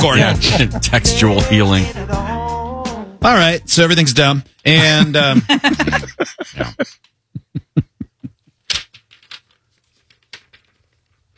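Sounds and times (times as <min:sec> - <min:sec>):
laughter: 0:00.0 - 0:01.1, 0:04.7 - 0:08.5
speech: 0:00.0 - 0:02.3, 0:03.2 - 0:07.0
paper crinkling while being folded: 0:08.8 - 0:11.3.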